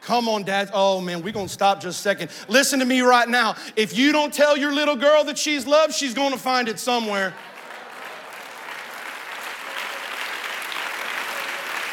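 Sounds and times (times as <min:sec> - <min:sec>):
speech: 0:00.1 - 0:07.5
audience clapping: 0:07.0 - 0:11.9.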